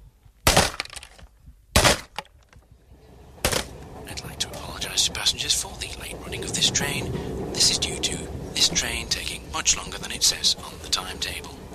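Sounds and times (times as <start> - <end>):
14-pound sledgehammer smashing tape recorder: 0.4 - 2.5, 3.4 - 3.7
speech: 5.0 - 11.7.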